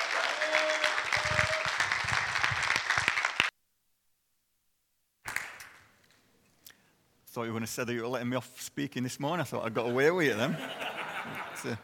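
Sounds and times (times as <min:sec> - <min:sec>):
audience applause: 0:00.0 - 0:03.5
speech: 0:07.4 - 0:11.8
laughter: 0:09.8 - 0:11.8.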